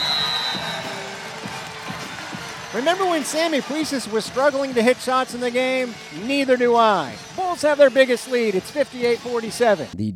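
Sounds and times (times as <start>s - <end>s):
thin high whistle-like tone: 0.0s - 1.0s
basketball arena crowd cheering: 0.0s - 9.9s
speech: 2.8s - 10.1s.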